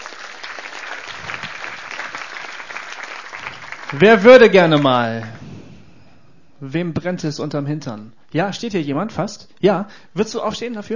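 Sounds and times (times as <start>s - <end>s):
audience applause: 0.0s - 5.4s
speech: 3.9s - 5.4s, 6.6s - 10.9s.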